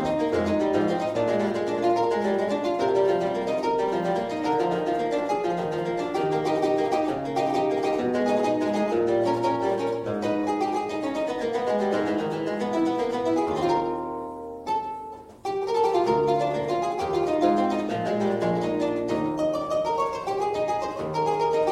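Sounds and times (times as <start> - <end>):
historical keyboard lute playing: 0.0 - 21.7.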